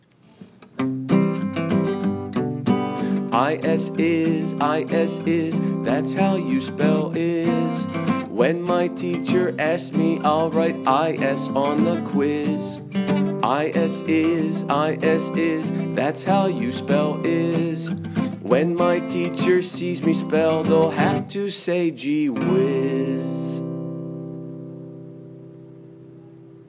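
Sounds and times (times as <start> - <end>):
Christmas song: 1.2 - 26.6.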